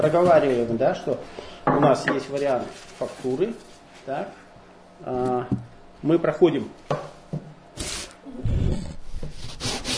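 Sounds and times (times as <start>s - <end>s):
speech: 0.0s - 4.4s, 5.0s - 7.4s
sanding a wooden gingerbread mold with sandpaper: 9.4s - 9.9s.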